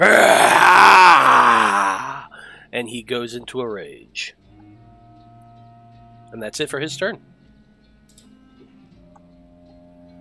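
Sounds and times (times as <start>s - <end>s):
man imitating a loud roar: 0.0s - 2.4s
speech: 2.8s - 4.4s, 6.3s - 7.3s.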